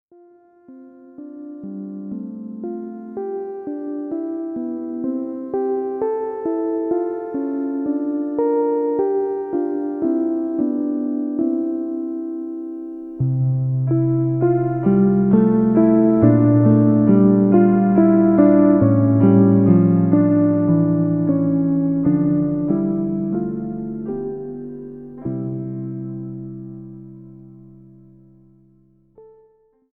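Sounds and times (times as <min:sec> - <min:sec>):
keyboard prelude in F major: 0:00.1 - 0:29.5.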